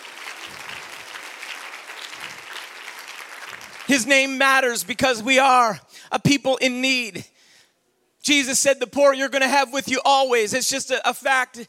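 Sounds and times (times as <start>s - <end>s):
audience clapping: 0.0s - 4.4s
speech: 3.9s - 7.3s, 8.2s - 11.6s.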